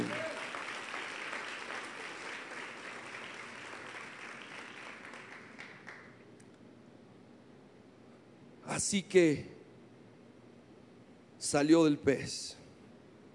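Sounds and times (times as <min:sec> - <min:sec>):
audience applauding: 0:00.0 - 0:06.2
speech: 0:08.8 - 0:09.6, 0:11.5 - 0:12.6.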